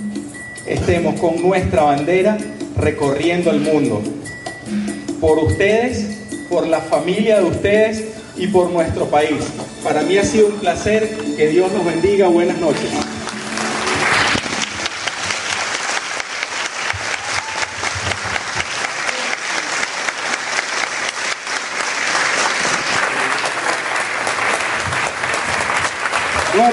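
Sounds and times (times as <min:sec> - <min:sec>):
speech: 0:00.7 - 0:04.3, 0:05.2 - 0:13.0
audience applause: 0:12.8 - 0:26.7.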